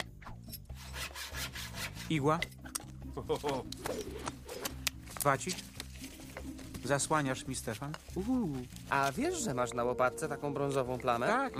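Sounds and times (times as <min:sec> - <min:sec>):
hand saw sawing: 0:00.7 - 0:02.3
speech: 0:02.1 - 0:02.6, 0:03.2 - 0:04.4, 0:05.2 - 0:05.7, 0:06.8 - 0:11.5.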